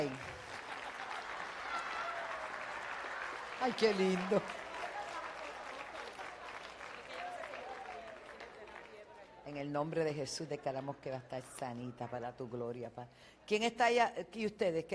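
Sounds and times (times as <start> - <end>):
speech: 0.0 - 0.3, 3.6 - 4.6, 9.5 - 14.9
audience applause: 0.0 - 9.4.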